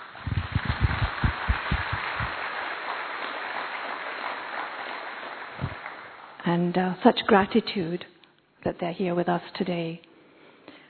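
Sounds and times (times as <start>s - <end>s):
audience applause: 0.0s - 6.4s
speech: 6.5s - 10.1s.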